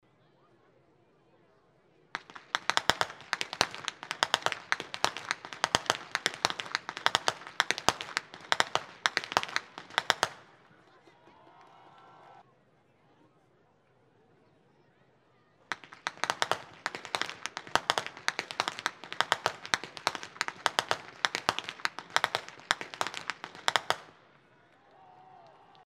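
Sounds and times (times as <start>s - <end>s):
youth whip cracking: 2.2s - 10.5s, 15.7s - 24.2s.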